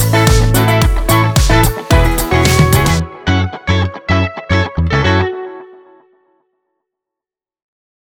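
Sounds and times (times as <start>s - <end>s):
feel-good indie music: 0.0s - 6.0s.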